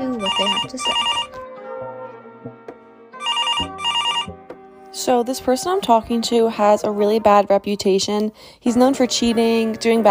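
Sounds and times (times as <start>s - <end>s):
telephone ringing for an incoming caller: 0.0s - 1.4s, 3.2s - 4.4s
speech: 0.4s - 1.3s, 5.0s - 10.0s.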